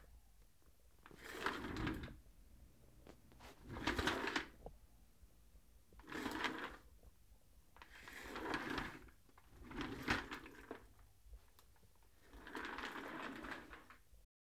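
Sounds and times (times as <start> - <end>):
chair rolling: 1.1 - 2.2, 3.0 - 4.7, 6.0 - 6.9, 7.8 - 10.8, 12.1 - 13.9.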